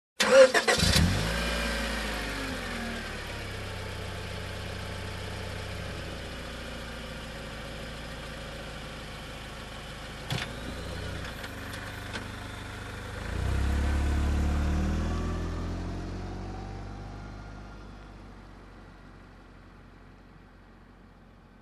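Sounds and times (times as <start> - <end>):
car driving away: 0.2 - 5.6, 10.2 - 21.4
car engine ignition: 0.2 - 21.5.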